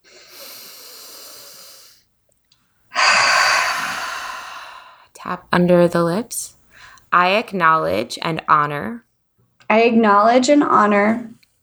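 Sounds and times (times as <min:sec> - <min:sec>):
deep breath during a guided tapping exercise: 0:00.0 - 0:02.0, 0:02.9 - 0:05.1
speech: 0:05.2 - 0:09.1, 0:09.7 - 0:11.3.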